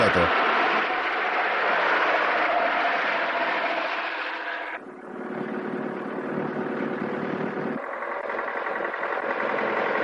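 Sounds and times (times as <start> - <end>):
truck engine running while driving in a 1957 drama film: 0.0 - 10.0.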